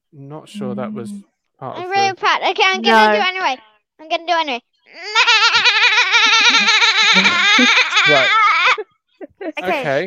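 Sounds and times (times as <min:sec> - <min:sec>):
speech: 0:00.1 - 0:05.4, 0:06.6 - 0:08.4, 0:09.5 - 0:10.0
child imitating a sheep bleating: 0:00.6 - 0:01.2, 0:01.8 - 0:02.2, 0:02.8 - 0:03.6, 0:04.9 - 0:08.8
laughter: 0:05.2 - 0:10.0.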